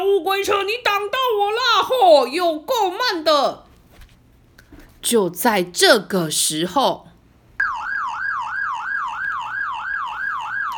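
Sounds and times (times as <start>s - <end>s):
speech: 0.3s - 3.7s, 5.0s - 7.1s
police car siren: 7.6s - 10.7s.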